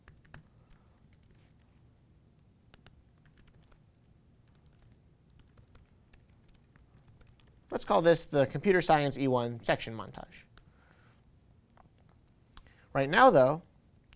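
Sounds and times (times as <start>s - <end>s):
computer keyboard typing a video title: 0.0s - 1.7s, 2.7s - 3.8s, 4.4s - 7.7s
speech: 7.7s - 10.5s, 13.0s - 13.7s.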